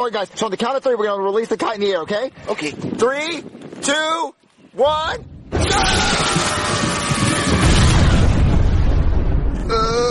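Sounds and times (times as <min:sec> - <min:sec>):
speech: 0:00.0 - 0:06.1
lightning strike boom: 0:05.5 - 0:10.0.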